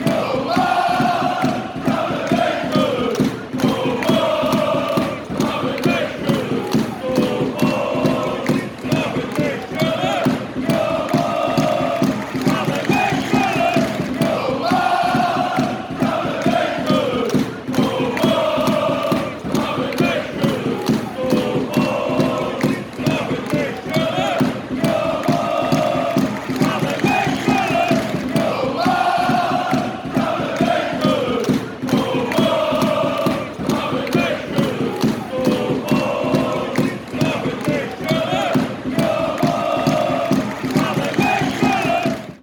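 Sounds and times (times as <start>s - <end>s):
football fans chanting: 0.0s - 42.4s.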